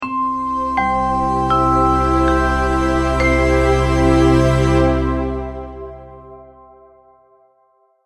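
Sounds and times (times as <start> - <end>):
multimedia musical logo: 0.0 - 7.8.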